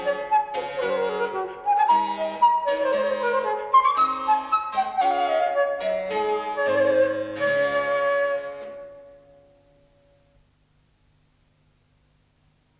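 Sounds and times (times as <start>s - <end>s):
transverse flute playing presto: 0.0s - 9.5s.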